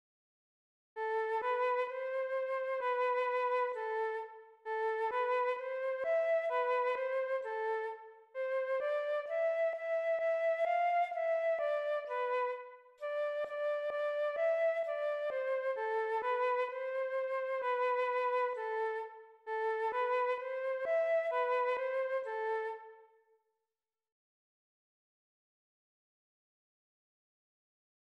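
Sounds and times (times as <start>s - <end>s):
flute solos in dance music: 1.0s - 23.2s.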